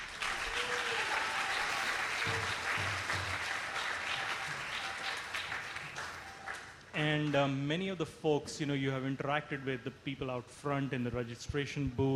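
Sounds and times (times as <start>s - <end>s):
applause: 0.0s - 7.4s
speech: 7.0s - 12.1s.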